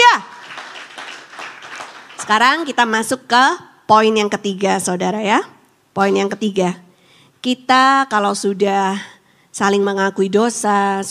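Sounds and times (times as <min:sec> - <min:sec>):
audience clapping hands: 0:00.0 - 0:02.9
speech: 0:02.3 - 0:06.8, 0:07.4 - 0:11.0.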